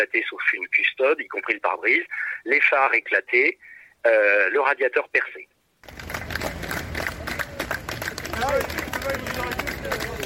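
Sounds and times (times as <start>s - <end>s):
speech: 0.0s - 6.0s
crowd applause for police cars: 5.8s - 10.2s.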